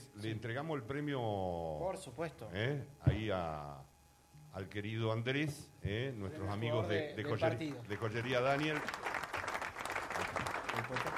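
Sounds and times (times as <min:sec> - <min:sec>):
speech: 0:00.2 - 0:03.9, 0:04.5 - 0:09.1
applause: 0:07.4 - 0:11.1.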